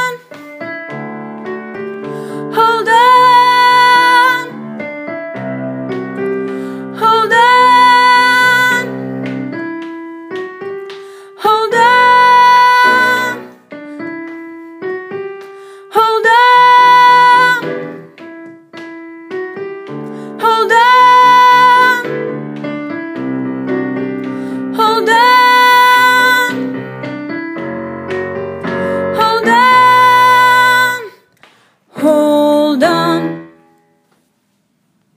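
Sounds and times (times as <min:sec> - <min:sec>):
soprano singing: 0:01.4 - 0:10.7, 0:11.3 - 0:18.9, 0:19.6 - 0:27.4, 0:28.6 - 0:31.2, 0:31.9 - 0:33.6.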